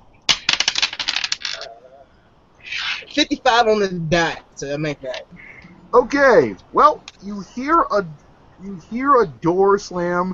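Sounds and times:
dice rattling across a table: 0:00.3 - 0:01.7
soft hiss: 0:01.4 - 0:10.3
speech: 0:03.2 - 0:10.3.

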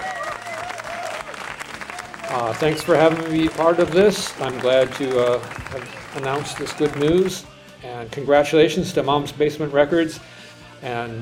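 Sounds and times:
cheering: 0:00.0 - 0:07.3
applause: 0:00.0 - 0:07.5
speech: 0:02.3 - 0:11.1.

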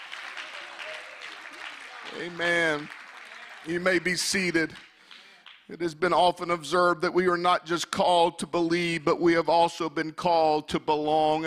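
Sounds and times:
audience clapping hands: 0:00.0 - 0:05.7
speech: 0:02.1 - 0:03.0, 0:03.6 - 0:04.9, 0:05.7 - 0:11.4.

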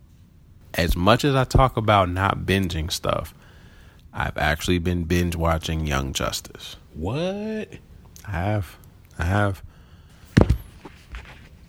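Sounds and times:
speech: 0:00.7 - 0:03.4, 0:04.2 - 0:09.7
microphone being knocked over: 0:10.2 - 0:11.6.

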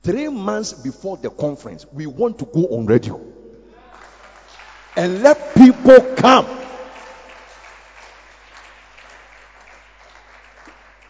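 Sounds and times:
speech: 0:00.0 - 0:03.3, 0:05.0 - 0:06.6
crowd applauding: 0:03.8 - 0:11.0.

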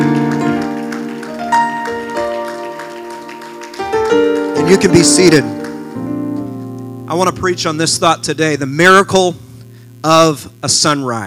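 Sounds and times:
audience hand clapping: 0:00.0 - 0:06.6
sustained keyboard or organ chords: 0:00.0 - 0:11.2
speech: 0:04.7 - 0:05.7, 0:07.1 - 0:09.4, 0:10.0 - 0:11.2.

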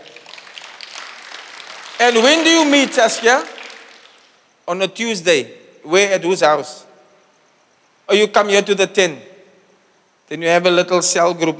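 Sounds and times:
audience clapping: 0:00.0 - 0:04.5
speech: 0:02.0 - 0:03.6, 0:04.7 - 0:06.9, 0:08.1 - 0:09.3, 0:10.3 - 0:11.5.

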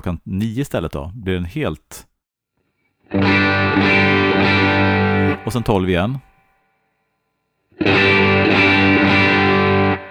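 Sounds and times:
speech: 0:00.0 - 0:02.1, 0:05.4 - 0:06.3
electric guitar chord through a tube amp: 0:03.1 - 0:05.5, 0:07.7 - 0:10.1.

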